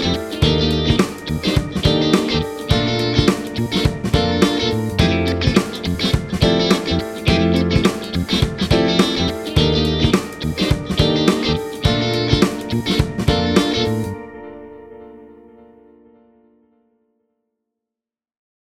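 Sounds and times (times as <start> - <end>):
rhythm: 0.0 - 14.8.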